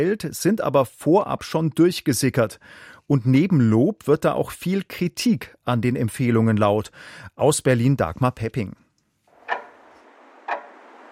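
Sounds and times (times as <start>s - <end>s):
speech: 0.0s - 8.8s
clock ticking: 9.4s - 11.1s.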